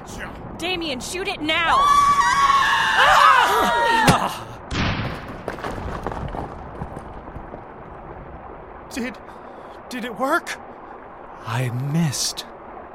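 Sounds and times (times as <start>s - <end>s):
speech: 0.1s - 4.5s, 9.0s - 9.2s, 9.9s - 10.6s, 11.4s - 12.5s
scream: 1.7s - 4.4s.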